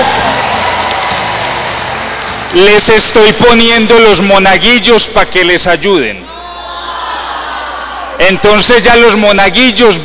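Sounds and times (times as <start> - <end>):
audience clapping: 0.0 - 3.1
speech: 2.5 - 6.3, 8.2 - 10.0.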